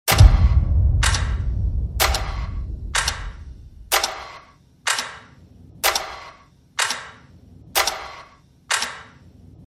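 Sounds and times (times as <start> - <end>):
trailer titles background music ringtone: 0.1 - 4.4.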